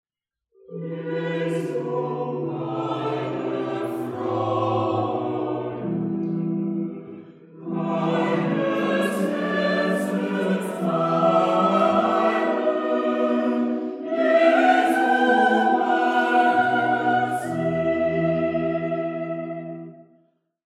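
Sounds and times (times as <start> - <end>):
chorale: 0.6 - 20.1.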